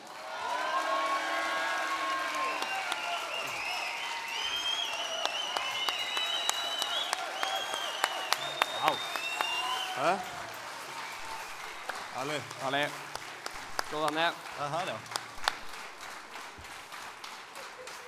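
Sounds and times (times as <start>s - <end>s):
crowd applauding at live event: 0.0s - 18.0s
whoops and whistles: 2.4s - 10.0s
speech: 10.0s - 10.3s, 12.2s - 13.0s, 13.9s - 15.2s.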